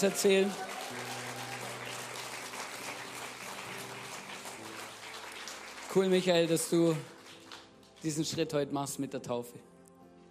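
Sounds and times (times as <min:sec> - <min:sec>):
speech: 0:00.0 - 0:00.8, 0:06.0 - 0:07.1, 0:08.0 - 0:09.7
audience applause: 0:00.0 - 0:08.1.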